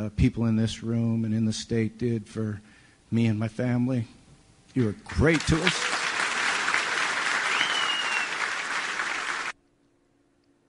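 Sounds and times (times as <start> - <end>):
speech: 0.0 - 6.0
long applause at a standing ovation: 5.1 - 9.6.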